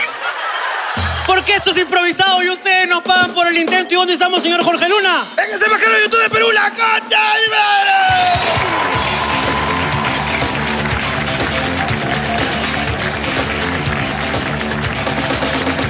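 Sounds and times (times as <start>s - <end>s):
laughter: 0.0s - 2.0s
speech: 1.4s - 8.6s
audience applause: 7.6s - 15.8s.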